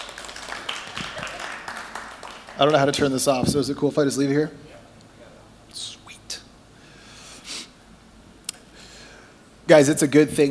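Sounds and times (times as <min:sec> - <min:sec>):
audience applause: 0:00.0 - 0:03.3
speech: 0:02.6 - 0:04.8, 0:09.7 - 0:10.4.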